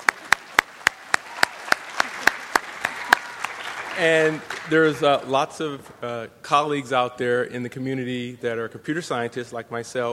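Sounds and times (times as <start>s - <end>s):
audience applause for a speaker at a Science on Saturday lecture: 0.0s - 5.4s
speech: 4.0s - 10.1s.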